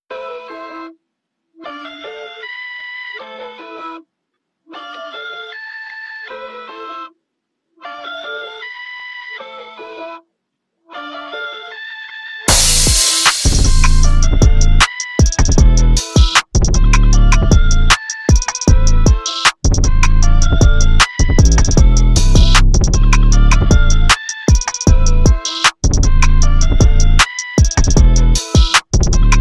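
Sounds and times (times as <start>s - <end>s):
instrumental old school trap hip hop beat: 12.5s - 29.3s.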